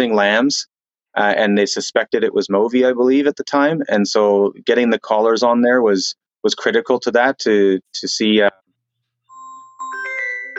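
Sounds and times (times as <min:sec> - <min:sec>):
speech: 0:00.0 - 0:08.6
phone incoming-call chime: 0:09.3 - 0:10.5.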